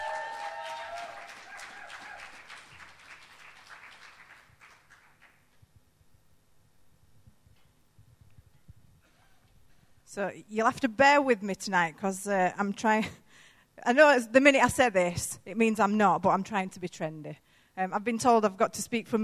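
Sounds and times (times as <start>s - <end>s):
round of applause: 0.0s - 5.6s
speech: 10.1s - 13.2s, 13.8s - 19.2s.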